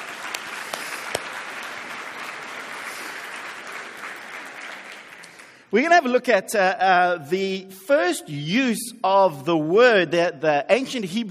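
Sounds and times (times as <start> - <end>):
round of applause: 0.0 - 5.7
speech: 5.7 - 11.2.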